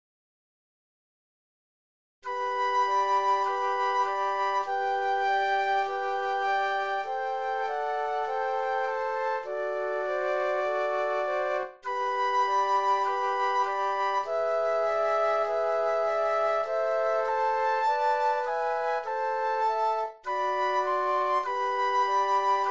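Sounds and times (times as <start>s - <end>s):
flute trio playing: 2.2s - 22.6s.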